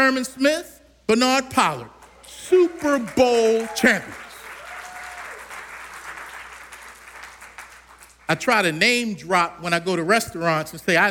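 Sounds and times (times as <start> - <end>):
speech: 0.1 - 4.2, 8.3 - 11.1
audience applause: 2.5 - 8.2.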